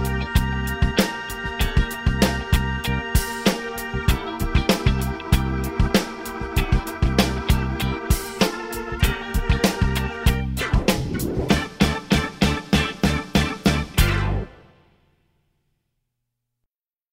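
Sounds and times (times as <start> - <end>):
drums: 0.0 - 14.6.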